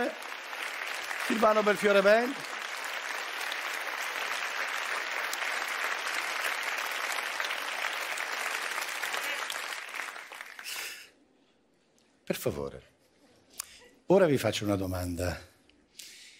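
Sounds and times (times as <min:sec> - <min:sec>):
audience applause: 0:00.0 - 0:11.0
speech: 0:01.3 - 0:02.5, 0:12.3 - 0:13.0, 0:14.1 - 0:15.5.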